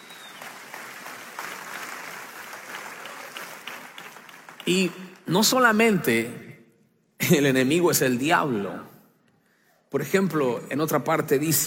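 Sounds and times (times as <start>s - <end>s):
crowd applauding: 0.0s - 5.7s
speech: 4.7s - 6.5s, 7.2s - 8.9s, 9.9s - 11.6s.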